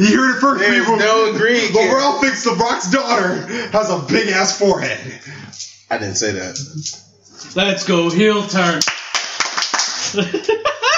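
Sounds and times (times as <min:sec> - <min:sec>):
excited voices: 0:00.0 - 0:08.8
speech: 0:00.0 - 0:09.0, 0:10.1 - 0:10.8
hand claps: 0:08.8 - 0:10.2
laughter: 0:10.0 - 0:10.9.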